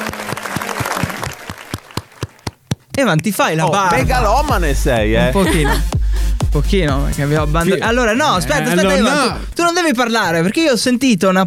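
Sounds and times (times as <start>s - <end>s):
applause from a few people: 0.0s - 2.5s
speech: 3.0s - 11.4s
laughter: 3.9s - 5.9s, 7.6s - 9.5s.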